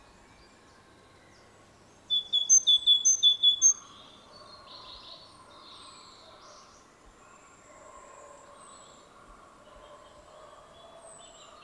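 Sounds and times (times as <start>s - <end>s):
great tit song: 2.1s - 3.9s.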